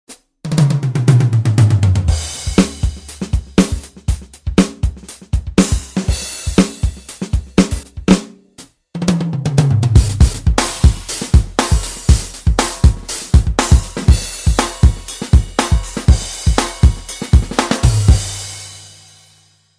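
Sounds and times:
metal drummer drumming: 0.5 - 8.4, 9.0 - 18.4.

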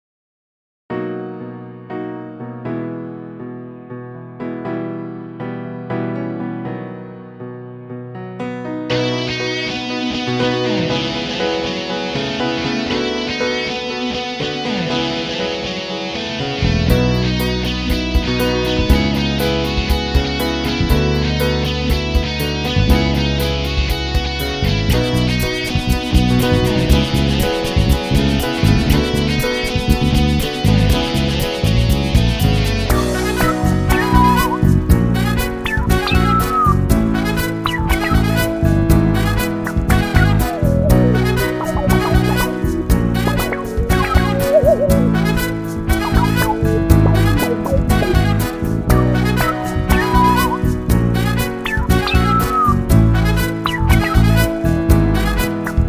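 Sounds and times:
instrumental music: 6.1 - 55.8.

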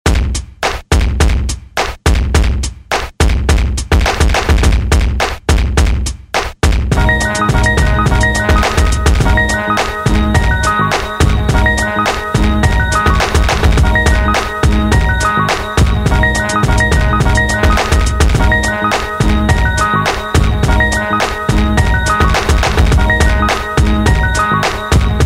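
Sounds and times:
music beat: 0.1 - 25.2.

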